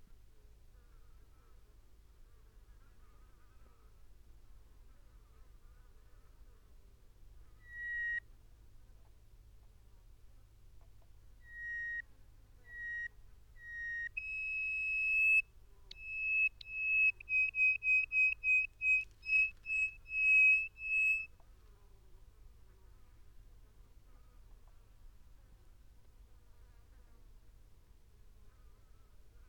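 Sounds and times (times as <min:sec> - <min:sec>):
bird whistling: 0:07.6 - 0:08.2, 0:11.4 - 0:12.0, 0:12.7 - 0:21.3.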